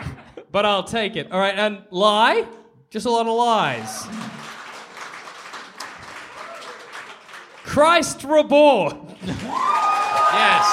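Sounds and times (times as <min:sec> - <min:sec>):
speech: 0:00.5 - 0:04.2, 0:07.7 - 0:09.8, 0:10.4 - 0:10.7
audience applause: 0:03.8 - 0:07.9, 0:09.2 - 0:10.7.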